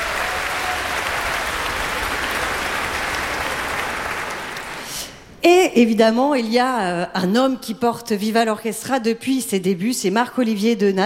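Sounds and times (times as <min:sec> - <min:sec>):
audience applause: 0:00.0 - 0:05.0
speech: 0:05.4 - 0:11.0.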